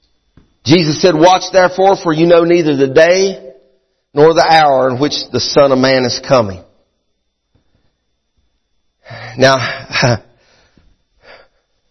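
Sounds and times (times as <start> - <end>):
speech: 0.7 - 3.4, 4.2 - 6.7, 9.1 - 10.3
man breathing heavily out of breath: 9.0 - 11.8.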